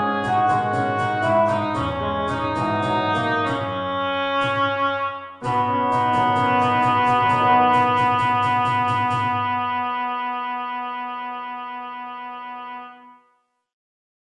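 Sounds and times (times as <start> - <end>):
MIDI hand drum: 0.0 - 3.8, 5.4 - 9.8
MIDI piano: 0.0 - 13.3.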